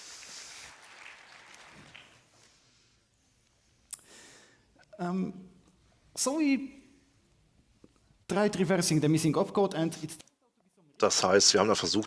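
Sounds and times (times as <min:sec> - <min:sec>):
applause in the hall: 0:00.0 - 0:02.5
speech: 0:05.0 - 0:05.5, 0:06.2 - 0:06.8, 0:08.3 - 0:10.3, 0:11.0 - 0:12.0.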